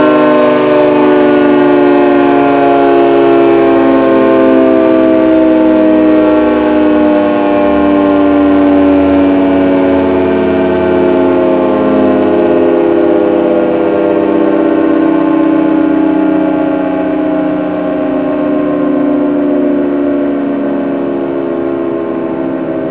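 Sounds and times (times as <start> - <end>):
hi-low siren signal: 0.0 - 22.8.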